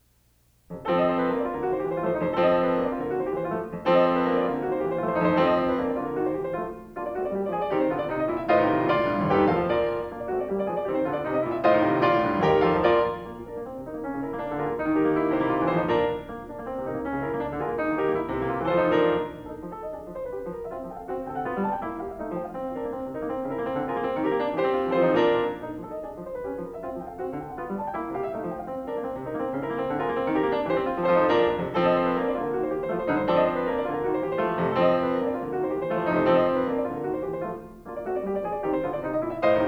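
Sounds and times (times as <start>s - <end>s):
piano piece: 0.0s - 39.6s.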